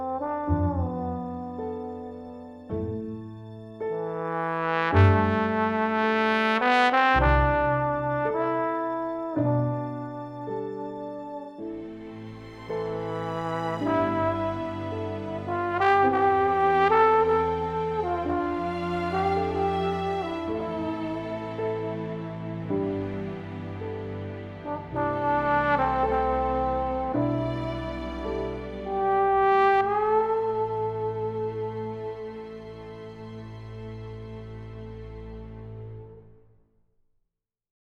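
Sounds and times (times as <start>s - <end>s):
trombone: 0.0s - 2.6s, 4.0s - 12.0s, 12.9s - 23.6s, 24.5s - 32.4s.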